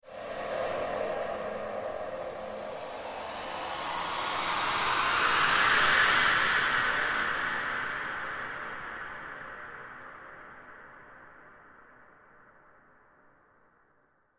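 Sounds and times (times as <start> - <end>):
graveyard wind: 0.0 - 11.0.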